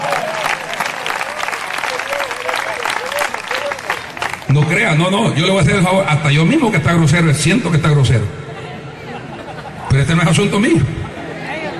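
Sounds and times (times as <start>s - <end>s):
audience applauding: 0.0s - 4.8s
speech: 4.5s - 8.4s, 10.1s - 11.0s
laughter: 8.5s - 11.7s.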